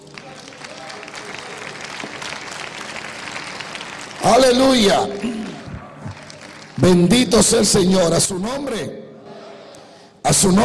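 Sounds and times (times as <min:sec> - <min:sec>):
audience applause: 0:00.0 - 0:07.1
speech: 0:04.2 - 0:05.4, 0:06.8 - 0:09.0, 0:10.3 - 0:10.6.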